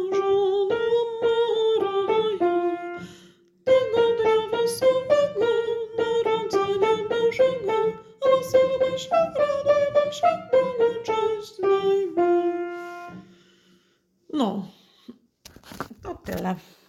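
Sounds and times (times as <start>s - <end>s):
soprano voice: 0.0s - 3.0s, 3.7s - 12.7s.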